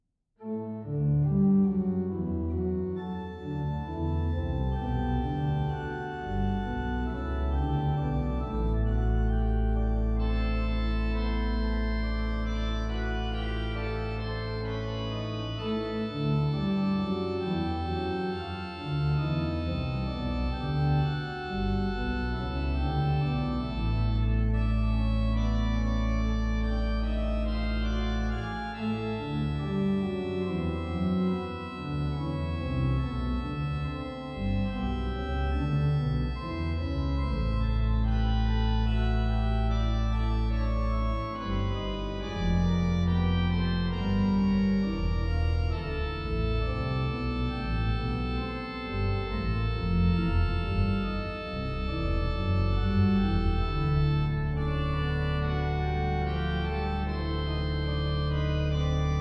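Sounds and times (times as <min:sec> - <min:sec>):
organist playing chorales: 0:00.4 - 0:59.1.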